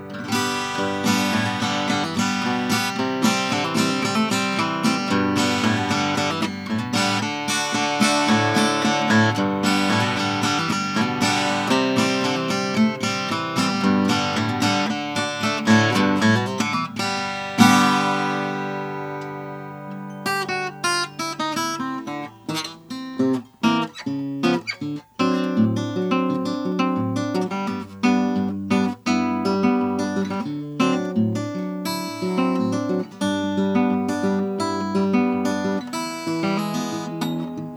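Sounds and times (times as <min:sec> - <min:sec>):
Martin 000-28 Brazilian acoustic guitar: 0:00.0 - 0:37.7.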